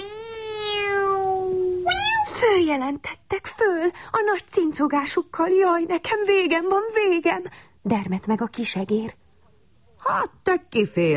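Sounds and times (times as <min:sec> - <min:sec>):
cat meowing: 0:00.7 - 0:02.4
speech: 0:02.7 - 0:09.2, 0:10.1 - 0:11.1.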